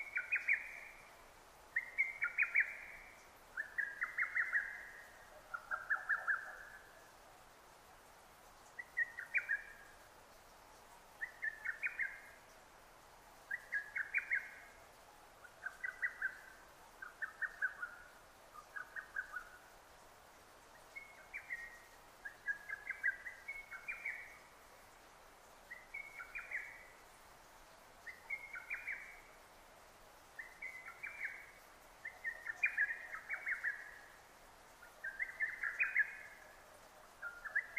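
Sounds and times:
Lesser cuckoo song: 1.8s - 7.1s, 8.8s - 10.0s, 11.2s - 12.4s, 13.5s - 14.8s, 15.4s - 19.7s, 20.8s - 24.6s, 25.7s - 27.0s, 28.0s - 29.4s, 30.4s - 37.7s.

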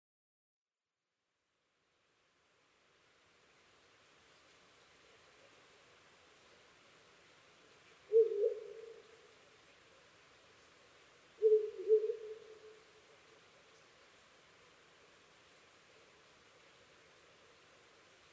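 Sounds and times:
owl hooting: 8.1s - 9.2s, 11.4s - 12.9s.

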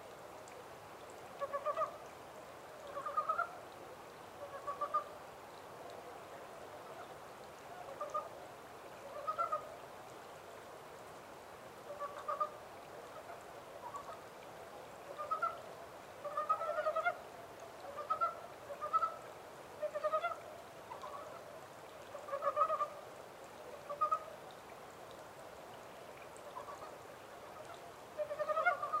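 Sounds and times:
low hiss: 0.0s - 28.9s
Japanese mountain brown frog clucking calls: 1.4s - 2.0s, 2.8s - 3.6s, 4.4s - 5.1s, 9.1s - 9.7s, 11.9s - 12.6s, 15.1s - 15.6s, 16.2s - 17.2s, 17.9s - 19.2s, 19.8s - 21.4s, 22.2s - 23.0s, 23.9s - 24.3s, 27.6s - 28.9s.

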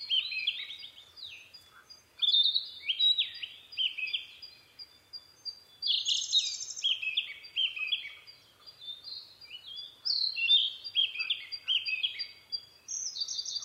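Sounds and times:
Narcissus flycatcher singing: 0.0s - 13.6s.

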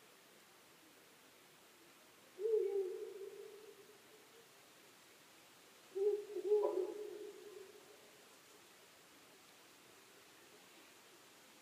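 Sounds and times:
soft hiss: 0.0s - 11.6s
owl hooting: 2.4s - 4.0s, 5.9s - 8.0s.

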